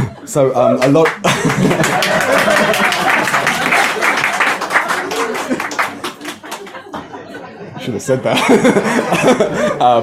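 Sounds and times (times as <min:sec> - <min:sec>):
speech: 0:00.3 - 0:03.0, 0:07.9 - 0:10.0
audience clapping: 0:00.8 - 0:07.3
laughter: 0:01.2 - 0:10.0.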